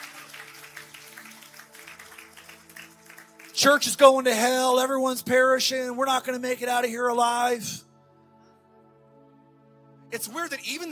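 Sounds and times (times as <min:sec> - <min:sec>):
audience hand clapping: 0:00.0 - 0:04.6
speech: 0:03.6 - 0:07.8, 0:10.2 - 0:10.8.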